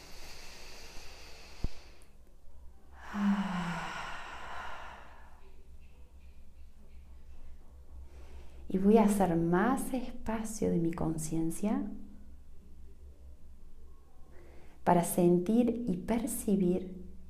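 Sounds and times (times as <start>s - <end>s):
deep breath: 0.0s - 2.2s, 3.0s - 5.6s
speech: 8.7s - 12.0s, 14.9s - 17.0s.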